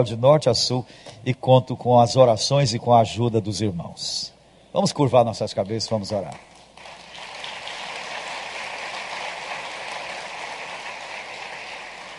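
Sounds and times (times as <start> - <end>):
speech: 0.0 - 6.5
audience applause: 6.6 - 12.1.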